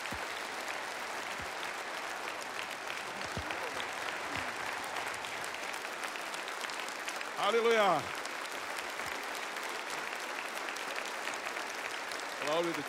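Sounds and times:
audience applause: 0.0s - 12.8s
speech: 7.4s - 8.2s, 12.5s - 12.8s.

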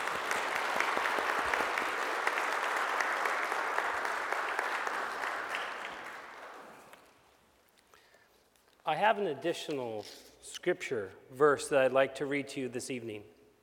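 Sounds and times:
audience applause for a choir: 0.0s - 7.3s
speech: 8.9s - 13.4s.

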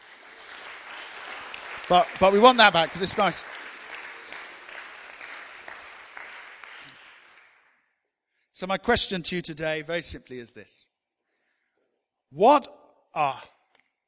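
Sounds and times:
audience applause: 0.0s - 7.7s
speech: 1.9s - 3.5s, 8.6s - 10.9s, 12.3s - 13.6s.

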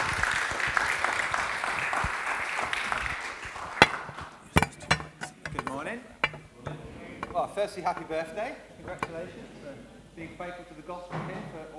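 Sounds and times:
audience clapping to welcome guests: 0.0s - 4.4s
sharp knocks: 2.0s - 8.2s
speech: 7.6s - 11.7s.

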